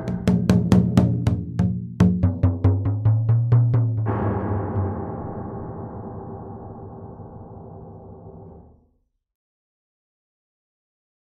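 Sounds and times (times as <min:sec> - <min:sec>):
waiting music before a stream starts: 0:00.0 - 0:08.6.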